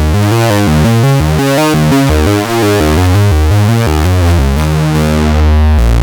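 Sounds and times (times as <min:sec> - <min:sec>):
audio feedback: 0:00.0 - 0:05.9.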